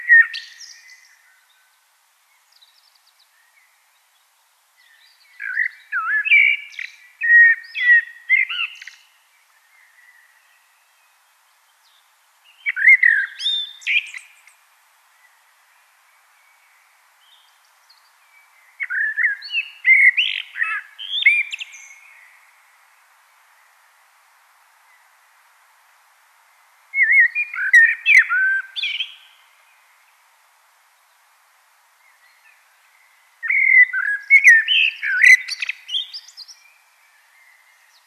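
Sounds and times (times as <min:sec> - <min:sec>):
common blackbird song: 0:00.0 - 0:24.1, 0:26.8 - 0:30.3, 0:30.9 - 0:38.0.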